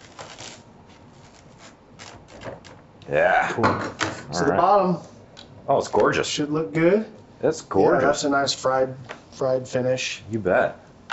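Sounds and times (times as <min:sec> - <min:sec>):
pizza crust crunching under a rocker cutter: 0:00.0 - 0:02.7
speech: 0:03.1 - 0:05.1, 0:05.7 - 0:10.8.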